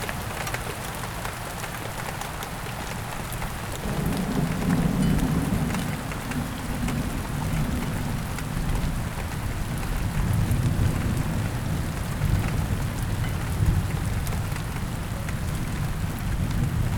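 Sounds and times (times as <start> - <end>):
rain falling steadily and densely: 0.0 - 16.9
low rumbling thunder: 3.7 - 16.9.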